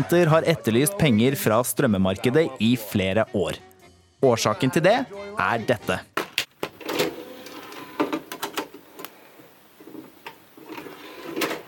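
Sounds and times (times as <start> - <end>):
speech: 0.0 - 6.1
DVD disc being handled: 6.4 - 11.6.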